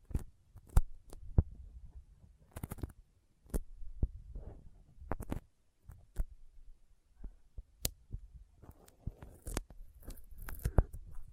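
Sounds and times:
sticky fingers tapping and peeling apart: 0.0s - 1.5s, 2.5s - 3.7s, 5.0s - 6.3s, 7.6s - 11.3s.

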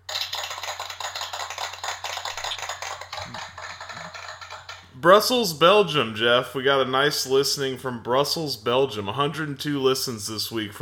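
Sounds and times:
round of applause sound effect: 0.0s - 4.8s
speech: 5.0s - 10.7s.

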